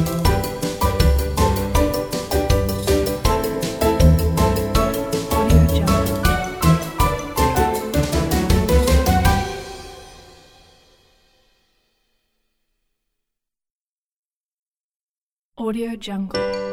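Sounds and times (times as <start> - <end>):
funny stroll music: 0.0 - 11.2, 16.4 - 16.7.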